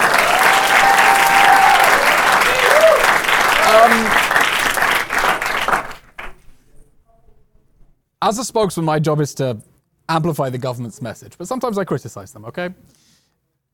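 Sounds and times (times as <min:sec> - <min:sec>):
audience round of applause: 0:00.0 - 0:06.4
speech: 0:08.2 - 0:13.0.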